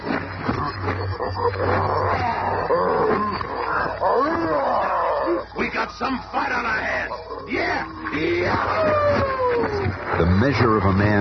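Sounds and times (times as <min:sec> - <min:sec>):
maddened gorilla roaring and snarling while attacking: 0:00.6 - 0:05.5, 0:06.8 - 0:10.3
speech: 0:01.2 - 0:02.9, 0:05.8 - 0:11.1.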